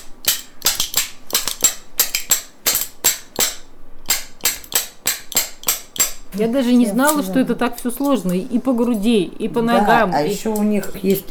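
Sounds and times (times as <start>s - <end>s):
wooden spoons played as percussion: 0.0s - 8.5s
speech: 6.3s - 11.2s.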